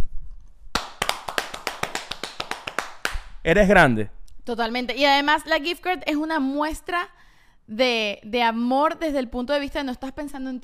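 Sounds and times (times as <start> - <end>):
hand clapping: 0.7 - 3.4
speech: 3.4 - 10.6.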